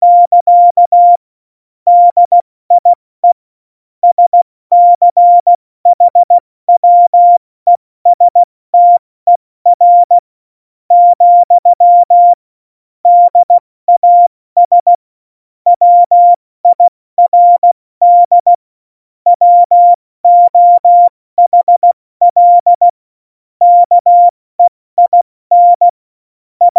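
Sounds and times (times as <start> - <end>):
CW Morse code beeps: 0.0 - 1.2, 1.9 - 3.4, 4.0 - 7.4, 8.1 - 10.2, 10.9 - 12.4, 13.1 - 15.0, 15.7 - 18.6, 19.3 - 22.9, 23.6 - 26.0, 26.6 - 26.7.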